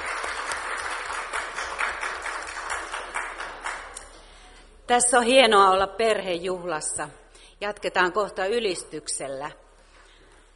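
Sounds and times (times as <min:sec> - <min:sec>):
audience applause: 0:00.0 - 0:04.1
speech: 0:04.9 - 0:09.6.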